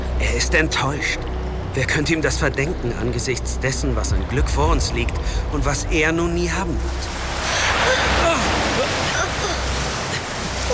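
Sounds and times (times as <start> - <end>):
speech: 0.3 - 7.2
rising floodwater rushing: 6.0 - 10.7.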